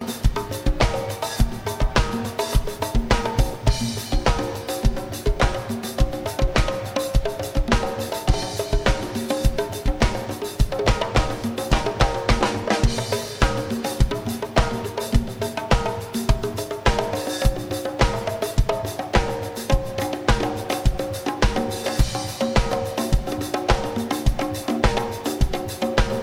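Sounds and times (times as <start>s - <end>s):
drums: 0.0s - 26.2s.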